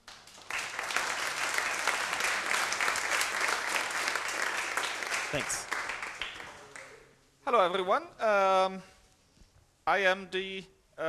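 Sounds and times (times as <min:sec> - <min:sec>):
audience applause: 0:00.0 - 0:07.1
speech: 0:05.3 - 0:05.7, 0:07.5 - 0:08.9, 0:09.9 - 0:11.0.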